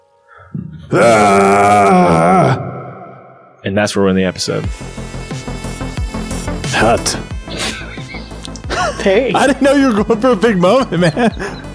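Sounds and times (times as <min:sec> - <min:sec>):
speech: 0:00.9 - 0:01.9, 0:03.7 - 0:05.3, 0:06.8 - 0:07.8, 0:09.0 - 0:11.6
person screaming: 0:00.9 - 0:03.4
laughter: 0:07.5 - 0:11.7.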